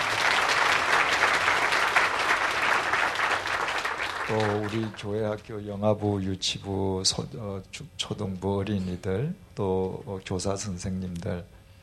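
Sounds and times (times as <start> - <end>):
audience applauding: 0.0 - 5.1
speech: 4.3 - 11.6.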